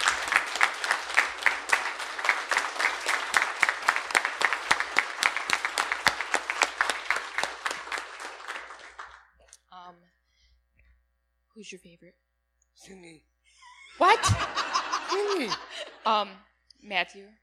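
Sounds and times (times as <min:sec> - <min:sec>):
audience round of applause: 0:00.0 - 0:09.2, 0:14.0 - 0:15.9
speech: 0:11.6 - 0:13.4, 0:15.3 - 0:17.4
laughter: 0:13.6 - 0:16.3.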